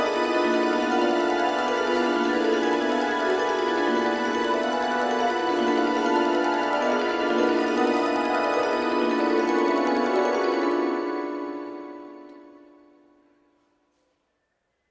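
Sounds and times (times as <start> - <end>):
background music ensemble: 0.0 - 13.0.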